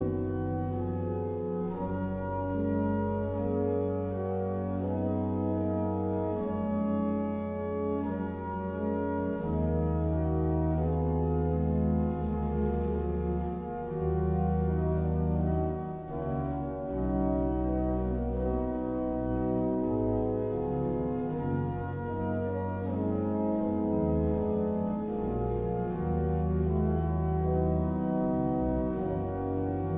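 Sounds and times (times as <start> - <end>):
organ: 0.0 - 29.9.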